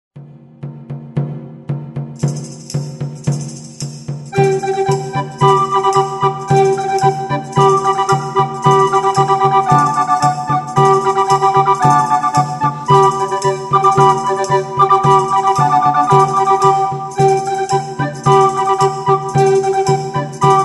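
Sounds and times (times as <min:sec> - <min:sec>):
fanfare: 0:04.4 - 0:20.6.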